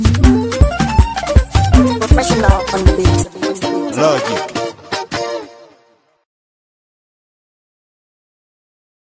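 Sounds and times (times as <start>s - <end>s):
professional music beat: 0.0s - 5.5s.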